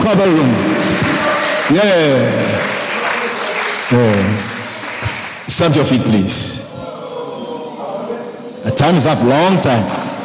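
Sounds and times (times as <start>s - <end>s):
speech: 0.1s - 0.7s, 1.7s - 2.8s, 3.9s - 6.7s, 8.7s - 10.0s
audience applause: 0.4s - 6.0s.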